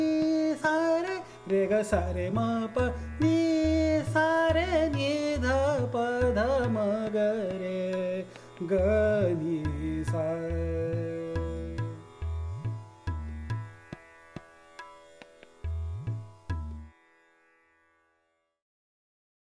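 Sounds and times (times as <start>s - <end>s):
person singing a raga: 0.0s - 14.1s.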